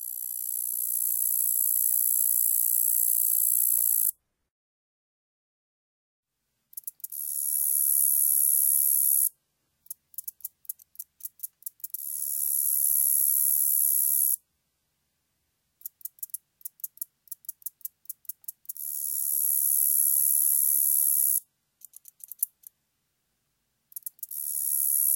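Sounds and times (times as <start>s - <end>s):
common meadow katydid Orchelimum vulgare song: 0.1s - 4.1s, 6.7s - 9.3s, 9.9s - 14.4s, 15.8s - 22.7s, 23.9s - 25.1s.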